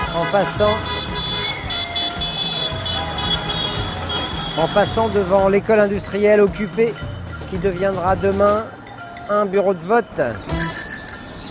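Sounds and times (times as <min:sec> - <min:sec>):
car horns honking in the streets of Barcelona at night: 0:00.0 - 0:05.3
speech: 0:00.2 - 0:01.0, 0:04.6 - 0:10.6.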